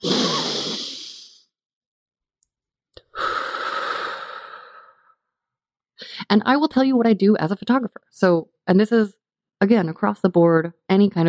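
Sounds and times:
person taking a long deep breath: 0.0s - 1.5s, 3.0s - 5.2s
speech: 6.3s - 11.2s.

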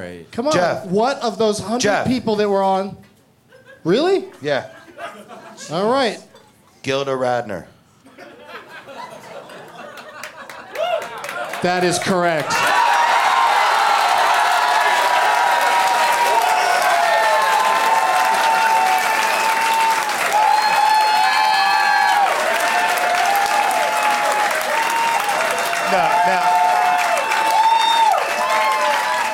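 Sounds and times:
speech: 0.0s - 3.1s, 3.8s - 7.7s, 11.6s - 12.7s
laughter: 3.5s - 6.7s, 8.0s - 12.2s, 25.9s - 26.8s
audience clapping: 9.5s - 29.3s.

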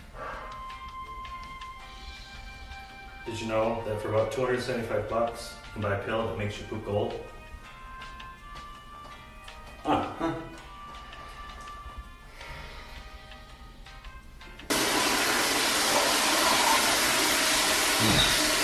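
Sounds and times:
speech: 3.3s - 7.4s
toilet flushing: 14.7s - 18.6s.

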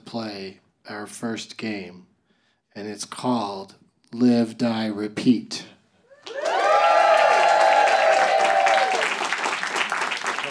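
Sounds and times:
speech: 0.1s - 2.1s, 2.8s - 5.8s
audience cheering and whooping: 6.1s - 10.5s.

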